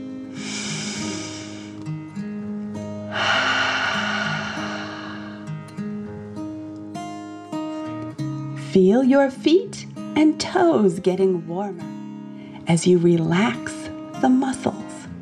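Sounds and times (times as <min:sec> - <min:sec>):
gentle sustained music bed: 0:00.0 - 0:15.2
deep breathing during a dragon breath relaxation exercise: 0:00.3 - 0:01.8, 0:03.1 - 0:05.8
speech: 0:08.8 - 0:11.9, 0:12.7 - 0:14.7.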